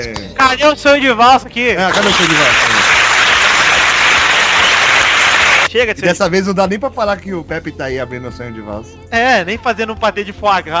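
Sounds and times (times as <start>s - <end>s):
speech: 0.0s - 2.7s, 5.7s - 10.7s
people clapping: 1.8s - 5.7s.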